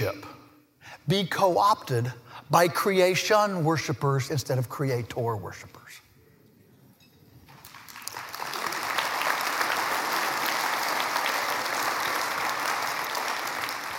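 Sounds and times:
speech: 0.0 - 0.4, 1.0 - 6.0
audience applause: 7.5 - 13.9.

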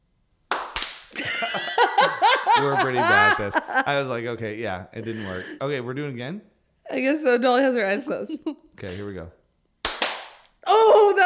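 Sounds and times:
people clapping: 0.5 - 1.4, 2.1 - 3.6, 9.8 - 10.4
laughter: 1.2 - 4.2, 5.0 - 5.6
speech: 2.6 - 9.4.

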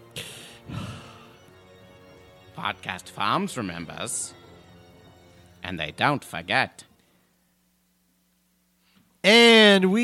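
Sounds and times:
heavy breathing: 0.2 - 1.5
speech: 2.6 - 4.4, 5.6 - 6.9, 9.2 - 10.0.

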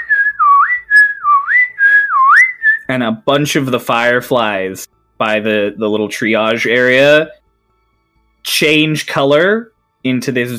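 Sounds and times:
human signal whistle: 0.0 - 2.9
speech: 2.9 - 7.4, 8.4 - 10.5.

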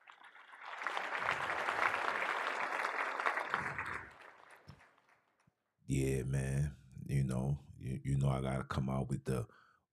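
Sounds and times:
round of applause: 0.0 - 5.3
speech: 5.9 - 9.9.

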